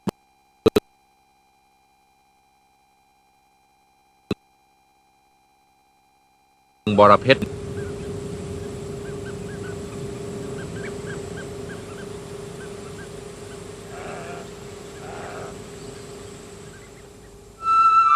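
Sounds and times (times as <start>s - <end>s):
speech: 6.9s - 7.6s
steady low hum: 6.9s - 18.1s
birds honking at the Bueng Boraphet wetland: 7.4s - 18.1s.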